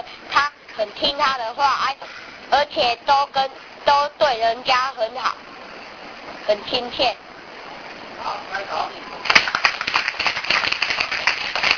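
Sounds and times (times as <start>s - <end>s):
speech: 0.8s - 5.5s, 6.4s - 7.2s, 8.2s - 9.6s
audience clapping: 9.2s - 11.7s.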